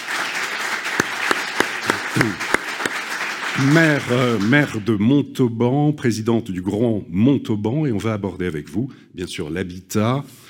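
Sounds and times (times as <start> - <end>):
audience applause: 0.0 - 4.8
speech: 2.2 - 2.6, 3.6 - 10.4.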